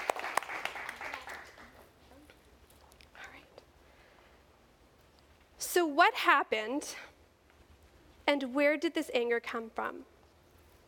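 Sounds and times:
audience applause: 0:00.0 - 0:01.8
speech: 0:05.7 - 0:07.1, 0:08.3 - 0:10.1.

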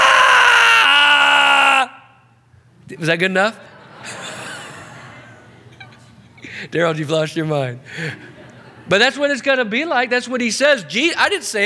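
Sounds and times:
person imitating wailing of people burning in hell: 0:00.0 - 0:02.1
speech: 0:02.9 - 0:04.2, 0:06.6 - 0:08.3, 0:08.9 - 0:11.6
laughter: 0:03.6 - 0:06.7, 0:07.9 - 0:09.2.

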